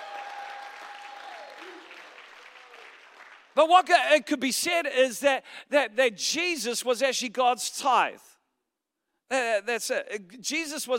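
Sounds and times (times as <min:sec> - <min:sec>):
audience applause: 0:00.0 - 0:03.6
speech: 0:03.6 - 0:08.3, 0:09.3 - 0:10.9.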